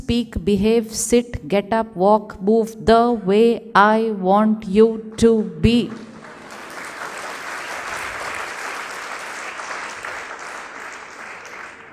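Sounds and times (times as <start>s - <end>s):
speech: 0.1s - 6.1s
audience clapping: 5.4s - 11.9s.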